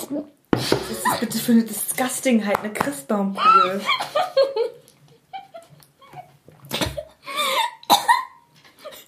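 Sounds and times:
speech: 0:00.1 - 0:00.4, 0:01.2 - 0:04.7
person coughing after choking on a drink: 0:07.5 - 0:08.4.

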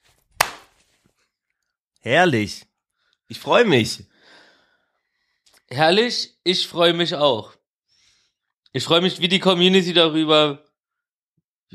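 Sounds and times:
single hand clap for recording sync: 0:00.4 - 0:00.7
speech: 0:02.0 - 0:02.7, 0:03.3 - 0:04.1, 0:05.7 - 0:07.6, 0:08.7 - 0:10.6.

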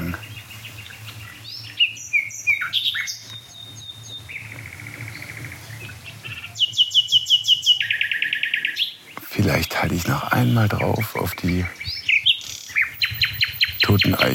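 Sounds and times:
nightingale singing: 0:00.0 - 0:14.3
speech: 0:10.4 - 0:11.8, 0:13.9 - 0:14.3.

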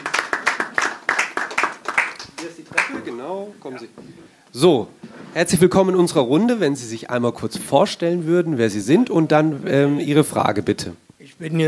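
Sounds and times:
audience applause: 0:00.0 - 0:03.2
speech: 0:03.1 - 0:11.6.

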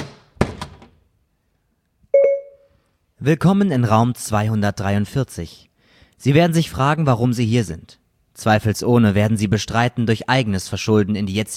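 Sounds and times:
door shutting: 0:00.0 - 0:01.0
electronic chime: 0:02.2 - 0:02.7
speech: 0:03.2 - 0:11.5.

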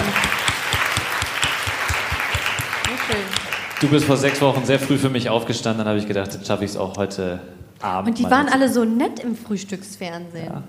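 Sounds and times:
audience applause: 0:00.0 - 0:05.2
speech: 0:03.1 - 0:10.6.

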